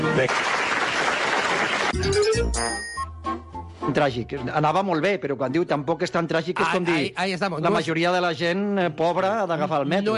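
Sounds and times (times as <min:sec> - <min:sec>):
applause: 0:00.0 - 0:02.1
speech: 0:00.2 - 0:00.6, 0:02.0 - 0:02.9, 0:03.9 - 0:10.1.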